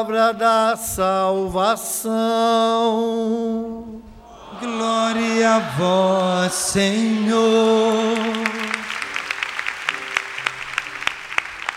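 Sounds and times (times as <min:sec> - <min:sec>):
speech: 0:00.0 - 0:04.0, 0:04.6 - 0:08.7
Mass congregation applauding the Holy Gospel: 0:04.6 - 0:11.7.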